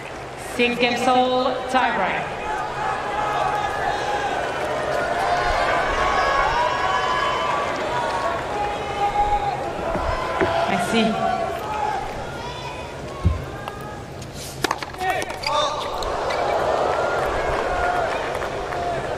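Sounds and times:
commentators talking: 0.4 - 4.4, 8.4 - 14.1
crowd murmur: 2.2 - 14.7, 15.4 - 19.1
ball bouncing off a tennis racket: 14.6 - 15.5.

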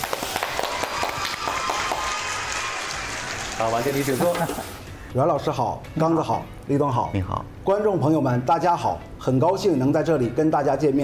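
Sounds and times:
warm audience applause: 0.0 - 4.4
speech: 3.6 - 11.0.

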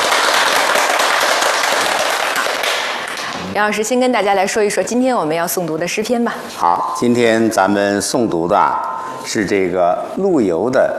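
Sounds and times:
audience applause: 0.0 - 3.5
speech: 3.6 - 10.9.

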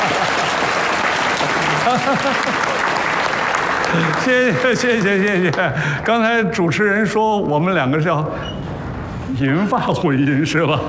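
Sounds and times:
audience applause: 0.0 - 6.1
laughter: 1.4 - 3.2, 3.8 - 6.0, 9.8 - 10.8
speech: 1.9 - 2.9, 3.9 - 8.6, 9.3 - 10.8.

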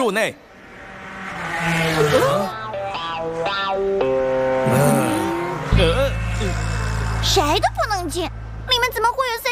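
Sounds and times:
racing cars on a track: 0.1 - 9.3.

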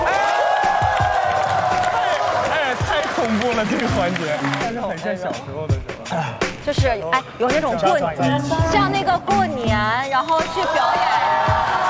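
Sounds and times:
applause: 0.0 - 4.8
speech: 3.6 - 11.8.

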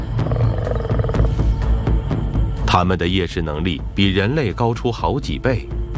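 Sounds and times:
lions roaring at night: 0.0 - 1.5
speech: 2.7 - 5.8.

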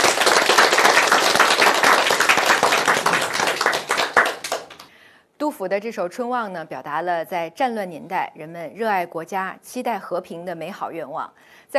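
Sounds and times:
group applause: 0.0 - 4.9
speech: 5.6 - 11.7.

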